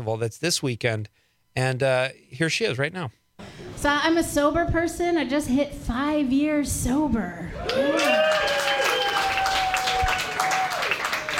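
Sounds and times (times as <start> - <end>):
speech: 0.0 - 8.5
polite audience applause: 7.6 - 11.3.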